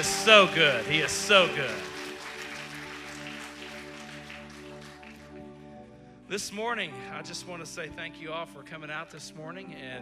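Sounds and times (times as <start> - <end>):
speech: 0.0 - 1.9, 6.3 - 10.0
crowd clapping in praise: 0.0 - 5.8.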